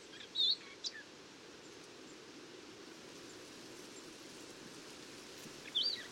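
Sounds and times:
Eurasian blackcap warbling song: 0:00.1 - 0:01.1, 0:05.6 - 0:06.1.

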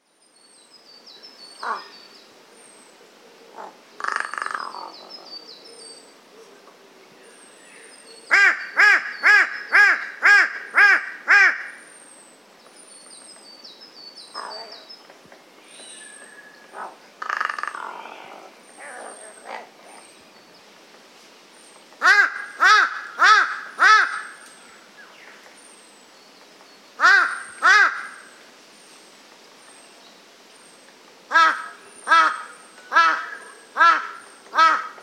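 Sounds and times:
Corvus corone calling: 0:01.6 - 0:01.9, 0:03.5 - 0:05.2, 0:08.3 - 0:11.8, 0:14.4 - 0:14.8, 0:15.7 - 0:19.8, 0:22.0 - 0:24.4, 0:27.0 - 0:28.4, 0:31.3 - 0:35.0.

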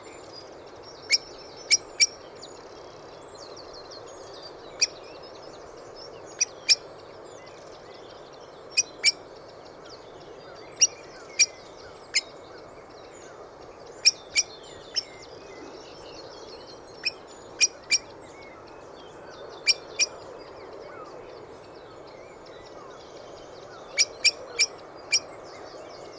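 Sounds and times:
other small birds twittering faintly: 0:00.0 - 0:26.1
Eurasian blackbird ticking calls: 0:00.7 - 0:02.4, 0:08.7 - 0:25.4.

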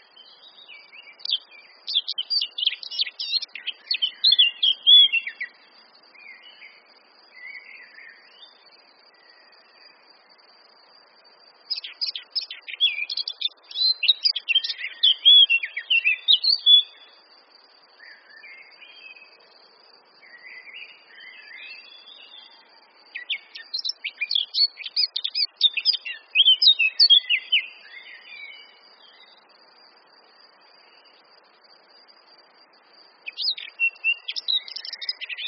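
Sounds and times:
Eurasian blackcap singing: 0:00.2 - 0:05.6, 0:11.7 - 0:17.2, 0:20.3 - 0:29.2, 0:33.2 - 0:35.4.

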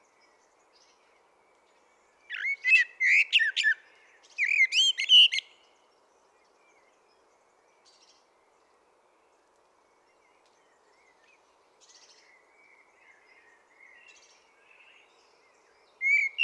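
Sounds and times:
common blackbird Turdus merula singing: 0:02.2 - 0:05.7, 0:10.2 - 0:16.4.

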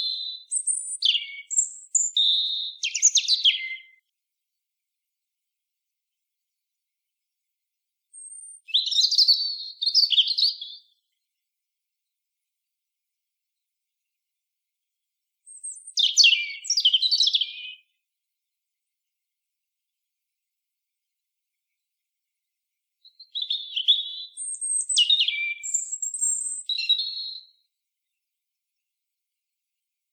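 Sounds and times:
European robin song: 0:00.0 - 0:04.0, 0:08.1 - 0:11.0, 0:15.4 - 0:18.0, 0:23.0 - 0:28.2.

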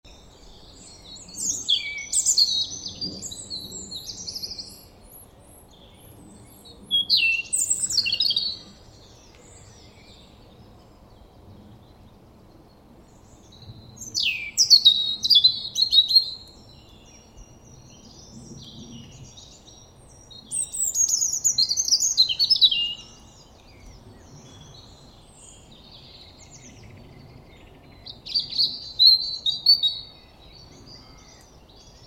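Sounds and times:
European robin singing: 0:00.1 - 0:11.3, 0:11.9 - 0:32.0.

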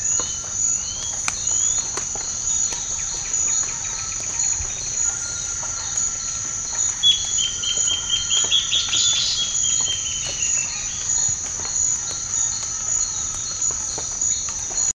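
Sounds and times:
constant high insect drone: 0:00.0 - 0:14.9
bird long thin downward-sliding whistled call: 0:07.0 - 0:11.0.

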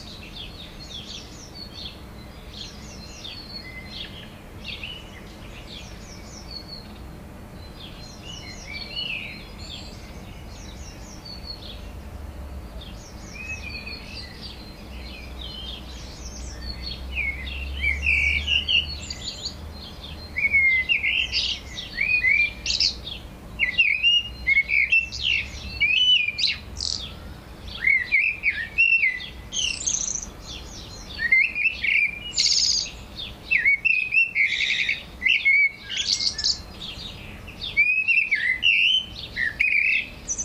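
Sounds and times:
Eurasian blackbird singing: 0:00.0 - 0:40.4
small birds chirping: 0:00.0 - 0:40.4.

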